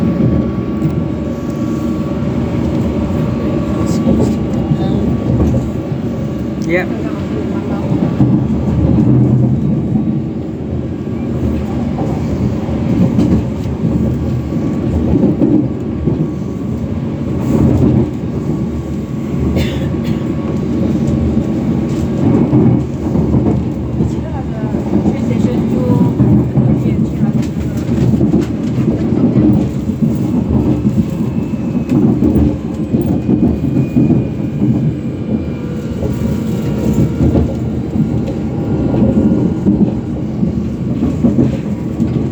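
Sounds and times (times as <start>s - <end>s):
train rumbling and rattling on a railway journey to Barking Riverside: 0.0s - 42.3s.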